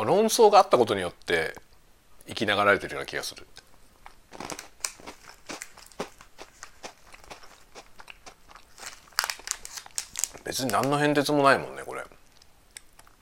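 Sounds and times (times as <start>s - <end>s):
speech: 0.0s - 1.6s, 2.3s - 3.6s, 10.5s - 12.1s
person crunching a chocolate biscuit snack: 4.0s - 11.0s.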